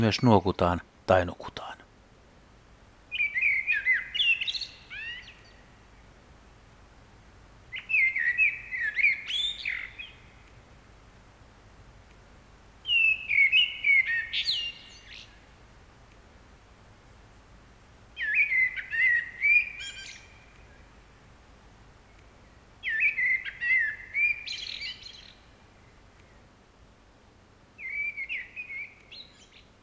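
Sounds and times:
speech: 0.0 - 1.8
common blackbird singing: 3.1 - 5.8, 7.7 - 10.4, 12.8 - 15.4, 18.2 - 21.0, 22.4 - 26.4, 27.8 - 29.8.

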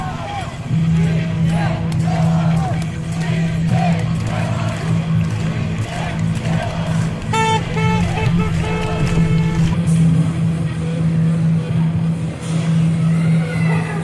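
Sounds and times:
occasional shouts: 0.0 - 4.9, 5.6 - 9.8
low hum of traffic or engines at protests in Belarus: 0.0 - 10.0
voices and crowd murmur at protests in Belarus: 0.0 - 14.0.

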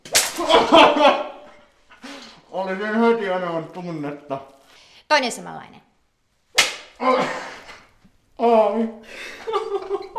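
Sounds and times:
whip striking a gagged person bound to a frame: 0.0 - 0.6, 6.6 - 7.0
laughter: 0.4 - 1.5, 9.1 - 10.1
speech: 2.6 - 5.9, 7.0 - 7.5, 8.4 - 10.0.

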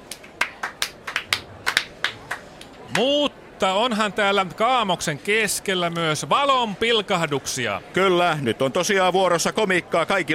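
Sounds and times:
sparse hand claps: 0.0 - 3.0
speech: 2.9 - 10.3.

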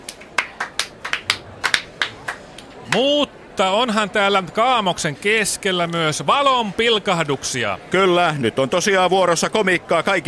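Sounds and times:
sparse hand claps: 0.0 - 3.0
speech: 2.9 - 10.2.

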